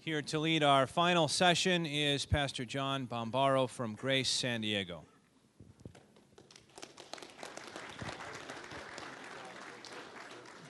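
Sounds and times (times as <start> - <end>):
speech: 0.0 - 5.1
audience applause: 6.4 - 10.6.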